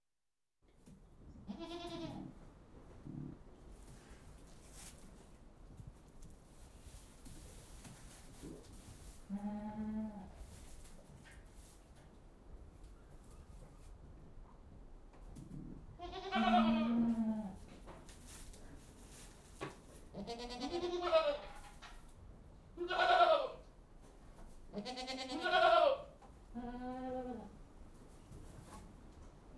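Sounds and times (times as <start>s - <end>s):
goats bleating inside a goat house: 1.5s - 2.2s, 16.0s - 17.5s, 20.2s - 21.6s, 22.8s - 23.6s, 24.8s - 27.5s.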